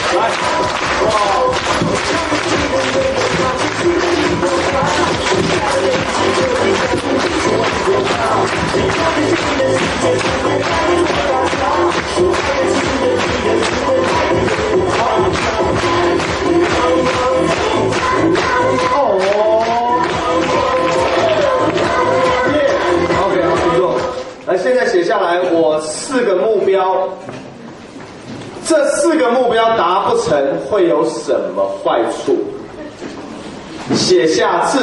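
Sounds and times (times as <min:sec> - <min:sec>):
large audience clapping: 0:00.0 - 0:24.5
speech: 0:00.2 - 0:01.3, 0:25.1 - 0:27.3, 0:28.7 - 0:32.6, 0:33.9 - 0:34.8.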